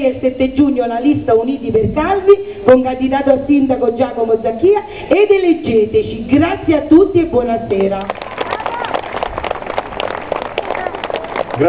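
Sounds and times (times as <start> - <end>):
speech: 0.1 - 9.5
audience applause: 8.0 - 11.6.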